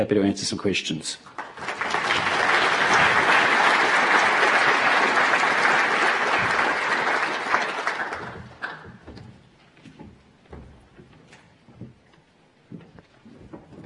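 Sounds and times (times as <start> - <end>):
speech: 0.0 - 2.0
audience applause: 1.3 - 9.1.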